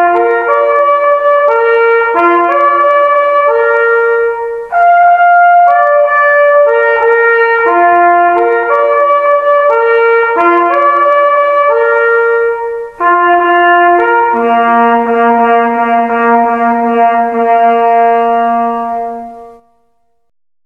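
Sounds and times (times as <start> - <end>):
signals: 0.0 - 19.9.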